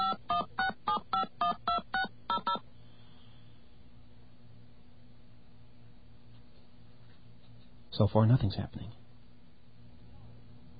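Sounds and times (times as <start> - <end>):
touch-tone keypad beeps dialing a phone number: 0.0 - 2.6
speech: 8.0 - 9.0.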